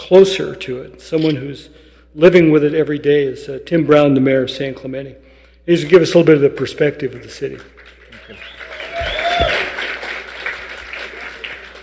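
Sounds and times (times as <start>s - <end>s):
speech: 0.1s - 7.7s
light applause from audience: 7.8s - 11.8s.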